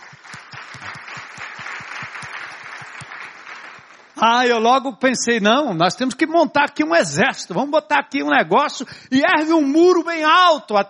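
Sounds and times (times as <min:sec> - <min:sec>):
audience applause: 0:00.0 - 0:04.4
speech: 0:04.2 - 0:10.8.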